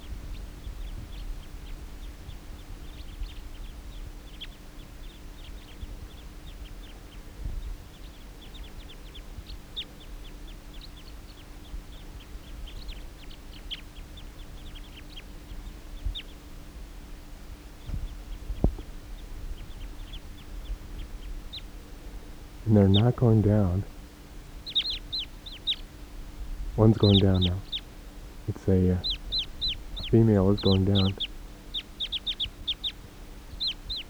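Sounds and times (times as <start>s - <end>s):
flock of wild birds calling: 0.0s - 34.0s
speech: 22.7s - 23.9s, 26.8s - 27.7s, 28.5s - 29.1s, 30.1s - 31.2s.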